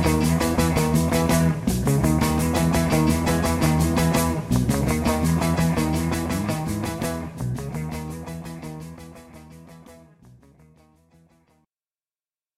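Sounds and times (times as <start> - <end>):
karaoke backing track: 0.0 - 8.8.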